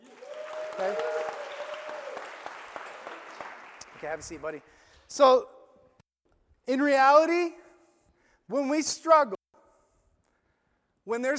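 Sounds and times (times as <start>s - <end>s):
brief cheer: 0.0s - 3.6s
audience applause for a child volunteer: 0.0s - 4.5s
speech: 0.8s - 1.2s, 4.0s - 5.6s, 6.7s - 7.6s, 8.5s - 9.4s, 11.1s - 11.3s.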